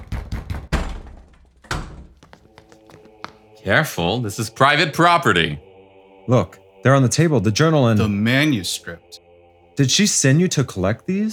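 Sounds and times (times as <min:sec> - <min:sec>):
heavy knocking on a door: 0:00.0 - 0:02.1
speech: 0:03.6 - 0:05.7, 0:06.3 - 0:09.2, 0:09.8 - 0:11.3.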